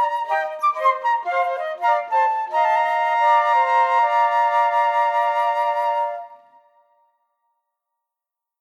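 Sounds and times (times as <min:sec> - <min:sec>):
gavotte piece: 0:00.0 - 0:06.8.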